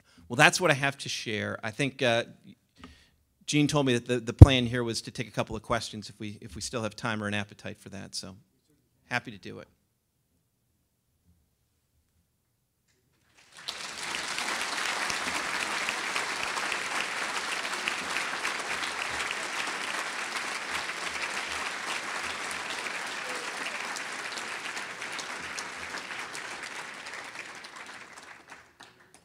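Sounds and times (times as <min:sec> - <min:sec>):
speech: 0:00.3 - 0:02.5, 0:03.5 - 0:08.5, 0:09.1 - 0:09.8
audience applause: 0:13.3 - 0:29.2.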